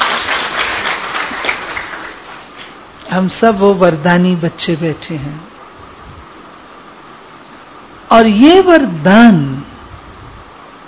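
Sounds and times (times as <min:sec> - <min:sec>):
crowd applauding: 0:00.0 - 0:02.4
speech: 0:03.1 - 0:05.5, 0:08.1 - 0:09.5.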